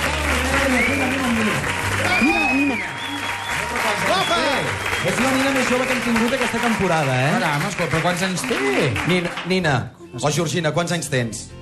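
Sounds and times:
cheers and voices: 0.0 - 7.0
audience applause: 0.0 - 9.7
speech: 5.7 - 11.6.

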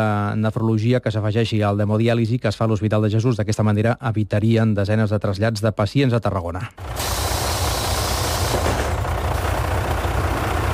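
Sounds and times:
speech: 0.0 - 7.2
coach bus engine idling: 6.7 - 10.7
coach bus air brakes hissing: 6.8 - 9.0.

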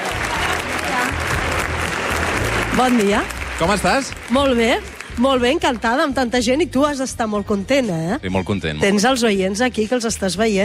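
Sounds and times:
audience applause: 0.0 - 6.1
speech: 2.8 - 10.6.

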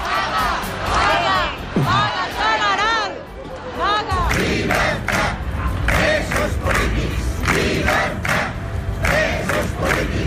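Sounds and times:
large street protest crowd shouting and chanting: 0.0 - 10.2.

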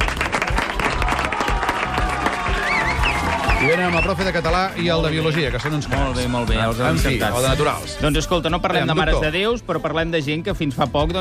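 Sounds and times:
students applauding: 0.0 - 6.5
speech: 3.6 - 11.1.

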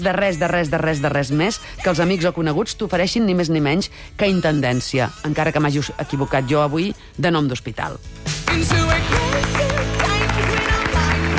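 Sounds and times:
speech: 0.0 - 9.6
audience applauding: 8.4 - 11.3.

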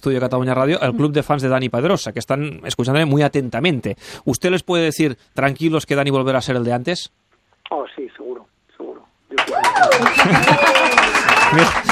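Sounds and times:
speech: 0.0 - 8.4, 9.4 - 11.9
fan club applauding in studio: 9.3 - 11.9
laughter: 9.9 - 11.9.

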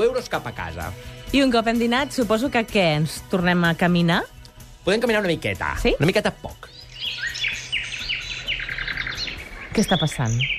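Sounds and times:
speech: 0.0 - 6.7, 9.8 - 10.5
forest ambience sound effect: 6.5 - 10.5.

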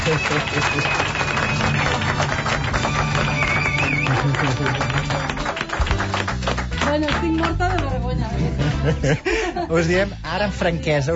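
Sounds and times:
laughter: 0.0 - 1.7, 4.0 - 5.2, 8.0 - 10.1
audience applause: 0.0 - 8.0
speech: 0.1 - 1.2, 4.1 - 5.4, 6.9 - 11.1.

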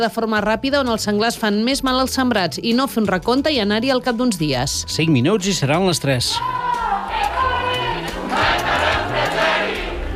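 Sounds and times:
speech: 0.0 - 6.7
student protesters shouting at demonstration: 6.4 - 10.1.

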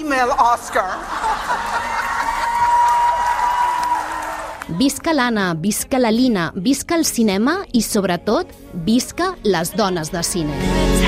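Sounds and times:
speech: 0.0 - 1.9, 4.7 - 11.0
laughter: 0.4 - 3.0
women in an audience shouting and cheering: 1.6 - 5.2
applause: 1.9 - 4.8.

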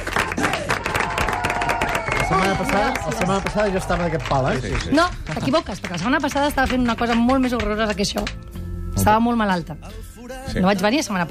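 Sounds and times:
audience applause: 0.0 - 7.6
speech: 2.3 - 11.2.

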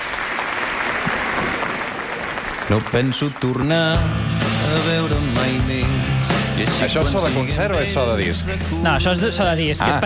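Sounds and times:
audience applause from recording: 0.0 - 4.1
speech: 2.7 - 10.0.

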